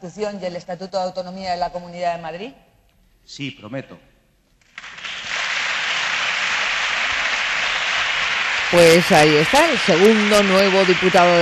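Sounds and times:
speech: 0:00.0 - 0:02.7, 0:03.3 - 0:04.1, 0:08.7 - 0:11.3
applause in parliament chamber: 0:04.6 - 0:11.3.

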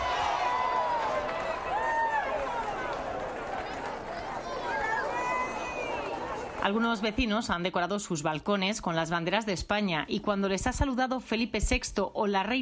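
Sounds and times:
crowd applauding: 0:00.0 - 0:07.4
speech: 0:06.6 - 0:12.6.

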